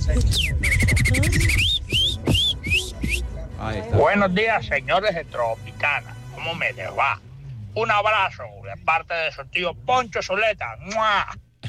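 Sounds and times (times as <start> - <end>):
speech: 0.1 - 0.7, 4.0 - 11.4
person whistling like a bird: 0.2 - 3.3.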